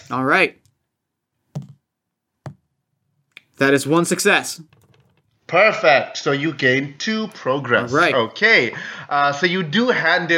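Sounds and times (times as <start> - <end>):
speech: 0.1 - 0.6, 3.6 - 4.8, 5.5 - 10.3
dice being rolled on a table: 4.6 - 5.4.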